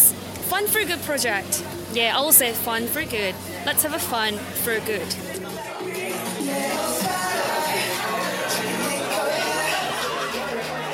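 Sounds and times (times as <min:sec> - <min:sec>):
crowd chatter in a nightclub: 0:00.0 - 0:10.9
speech: 0:00.5 - 0:05.3
people laughing: 0:07.1 - 0:10.9.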